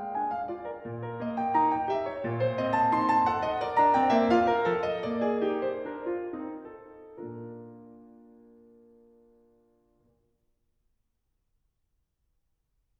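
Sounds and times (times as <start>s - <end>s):
baroque keyboard dance movement: 0.0s - 9.2s.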